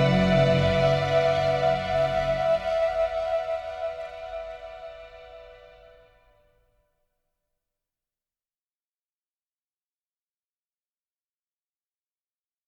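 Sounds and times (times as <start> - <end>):
uncertain ambient music: 0.0 - 6.3.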